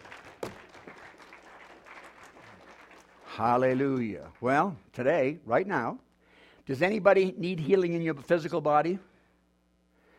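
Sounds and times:
audience clapping: 0.0s - 4.8s
speech: 3.4s - 6.0s, 6.7s - 9.1s.

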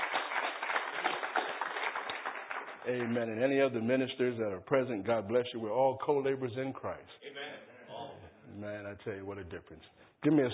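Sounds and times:
church congregation clapping to welcome a speaker: 0.0s - 3.8s
speech: 2.8s - 7.3s, 8.6s - 10.5s.

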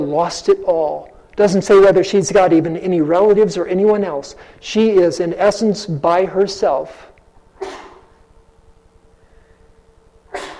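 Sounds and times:
speech: 0.0s - 7.8s
sneezes: 7.6s - 8.2s, 10.3s - 10.5s.

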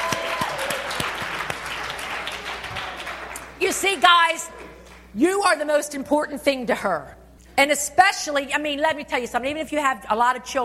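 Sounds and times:
audience applause: 0.0s - 4.8s
speech: 3.8s - 4.6s, 5.2s - 10.6s.

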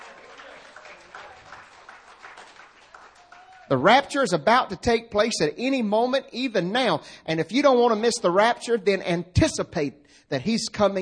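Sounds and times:
audience hand clapping: 0.0s - 3.9s
speech: 3.7s - 10.9s.

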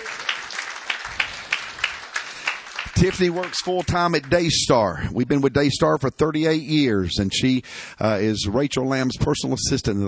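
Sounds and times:
church congregation clapping for a couple: 0.0s - 4.9s
speech: 3.0s - 10.0s.

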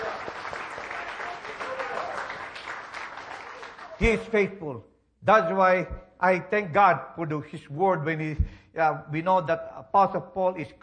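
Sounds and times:
audience clapping in praise: 0.0s - 4.3s
speech: 4.0s - 10.8s.

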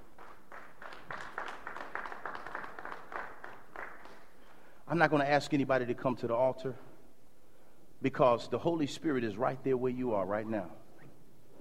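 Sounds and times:
audience clapping hands in praise: 0.0s - 4.6s
speech: 4.9s - 6.9s, 8.0s - 10.8s.

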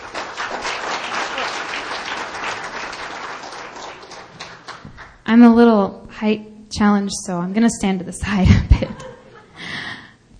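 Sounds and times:
church congregation applause at a Baptist service: 0.0s - 5.2s
speech: 5.3s - 9.1s
laughter: 8.4s - 9.6s.

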